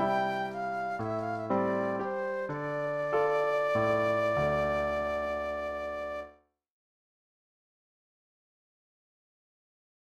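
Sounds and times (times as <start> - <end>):
flute solo: 0.0 - 6.4.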